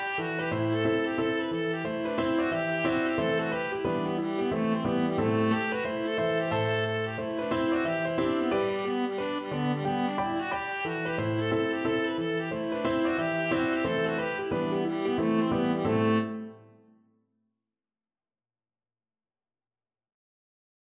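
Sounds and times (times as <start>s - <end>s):
viola: 0.0s - 16.8s.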